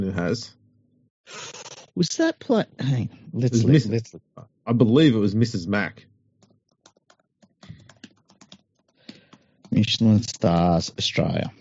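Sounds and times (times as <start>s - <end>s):
speech: 0.1s - 0.6s, 1.3s - 6.1s, 9.7s - 11.5s
computer keyboard typing: 6.4s - 10.8s.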